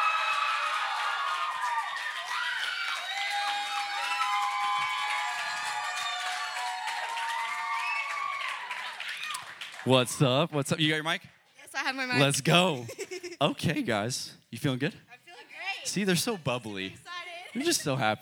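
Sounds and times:
audience high excited shouts, cheers and whoops: 0.0 - 9.6
audience applauding women back from a mission trip at a testimony night: 0.0 - 10.4
speech: 9.8 - 15.0, 15.8 - 18.2.

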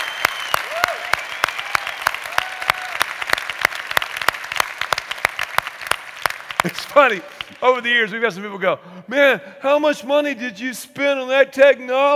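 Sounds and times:
short rising whistles: 0.0 - 2.1
faint cheers: 0.0 - 3.2
loud sustained audience applause: 0.0 - 7.8
speech: 6.6 - 12.1.

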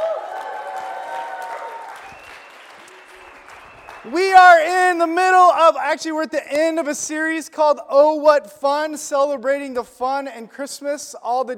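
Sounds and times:
audience applause welcoming a speaker: 0.0 - 4.2
speech: 4.0 - 11.5.

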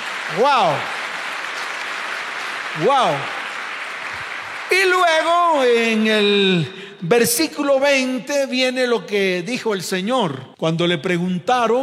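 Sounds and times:
audience applause: 0.0 - 6.4
speech: 0.3 - 1.0, 2.8 - 3.4, 4.1 - 11.8.

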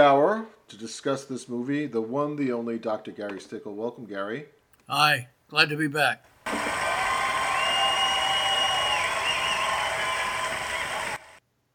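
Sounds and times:
speech: 0.0 - 6.7
applause: 6.5 - 11.4.

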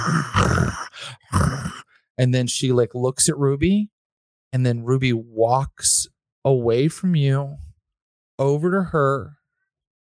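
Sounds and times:
person imitating a dog's growl: 0.0 - 1.9
speech: 2.2 - 3.9, 4.5 - 7.7, 8.4 - 9.4.

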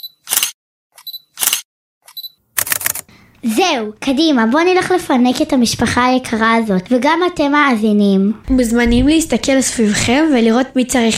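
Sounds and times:
camera shutter photographing a freshly baked cake for Instagram: 0.0 - 3.1
speech: 3.4 - 11.1.

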